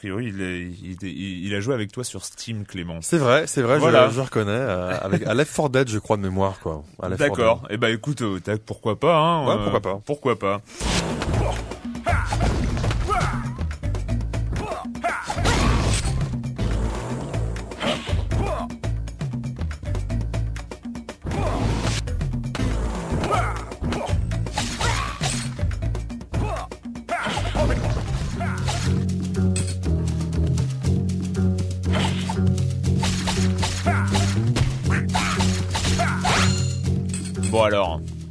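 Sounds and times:
speech: 0.0s - 11.7s
video game music track: 3.6s - 5.4s, 10.8s - 38.2s.

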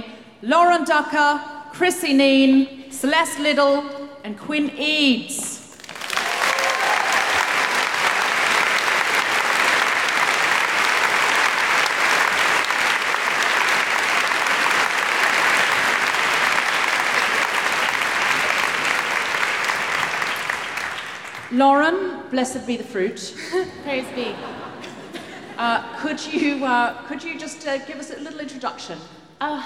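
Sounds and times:
speech: 0.4s - 5.4s, 21.6s - 24.7s, 25.6s - 29.6s
audience clapping for a panel at a live discussion about The Handmaid's Tale: 5.7s - 21.6s
laughter: 23.4s - 26.7s.

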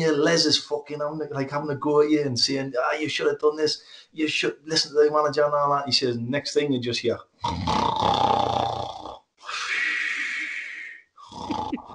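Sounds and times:
speech: 0.0s - 7.8s
person imitating snoring: 7.4s - 11.9s.

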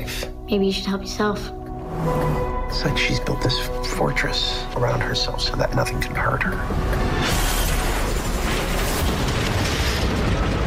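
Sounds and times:
speech: 0.5s - 7.5s
car crash: 7.0s - 10.6s.

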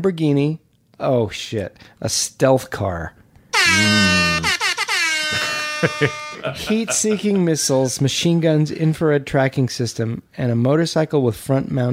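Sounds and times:
speech: 0.0s - 4.5s, 5.3s - 11.9s
air horn blast from a phone app: 3.6s - 7.2s
laughter: 5.3s - 7.7s.

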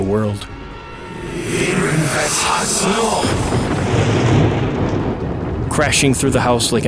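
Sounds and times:
speech: 0.1s - 0.6s, 1.3s - 4.5s, 5.8s - 6.8s
loud crack of lightning with booming rumble: 1.5s - 6.8s.

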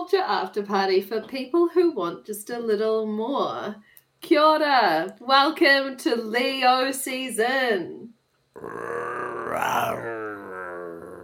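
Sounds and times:
speech: 0.1s - 10.2s
voice imitating a lion roar: 8.6s - 11.2s.

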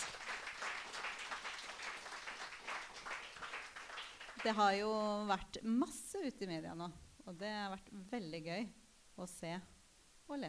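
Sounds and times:
audience applause: 0.0s - 4.7s
speech: 4.4s - 10.4s.

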